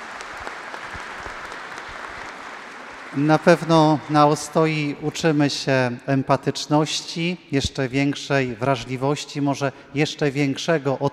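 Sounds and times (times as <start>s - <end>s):
crowd applauding: 0.0s - 4.5s
speech: 3.1s - 11.1s.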